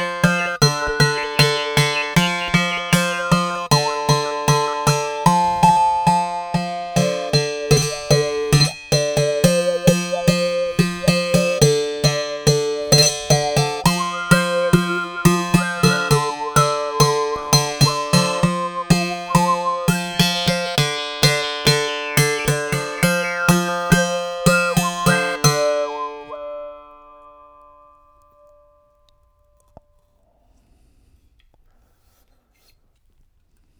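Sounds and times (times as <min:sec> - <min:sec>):
jaw harps: 0:00.0 - 0:27.0
classical two-string instrument: 0:00.0 - 0:28.6.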